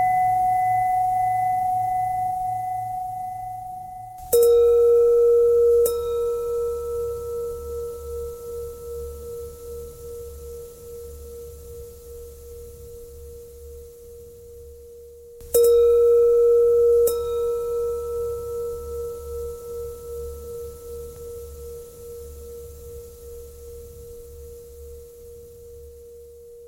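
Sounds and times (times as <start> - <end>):
bending bell tone: 0.0 - 10.5, 15.5 - 22.3.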